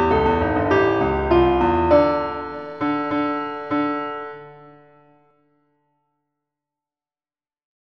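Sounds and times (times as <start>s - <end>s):
blues riff: 0.2s - 4.1s.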